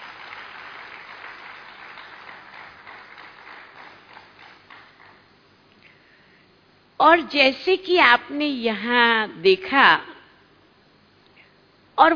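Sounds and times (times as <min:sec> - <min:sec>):
crowd applauding: 0:00.0 - 0:05.2
speech: 0:07.0 - 0:10.1, 0:12.0 - 0:12.1.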